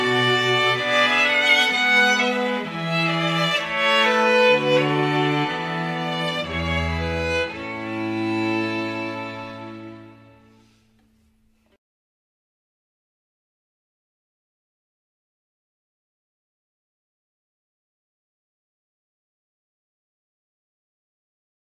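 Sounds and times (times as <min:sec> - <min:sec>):
strings: 0:00.0 - 0:11.8.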